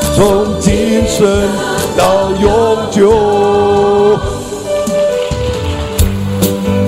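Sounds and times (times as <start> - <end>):
speech: 0.2 - 3.4
audience applause after a song: 4.9 - 6.8.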